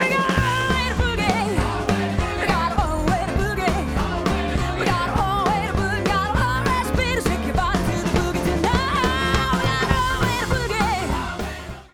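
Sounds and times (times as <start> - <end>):
lead vocals: 0.0 - 11.9.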